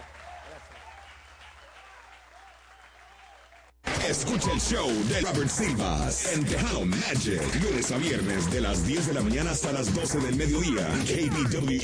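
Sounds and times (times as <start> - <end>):
audience applause: 0.0 - 3.8
speech: 4.1 - 11.8.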